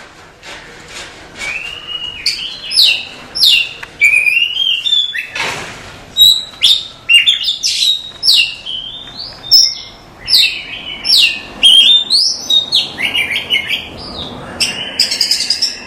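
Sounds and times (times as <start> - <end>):
Oriental magpie-robin song: 1.5 - 5.4, 6.2 - 15.8.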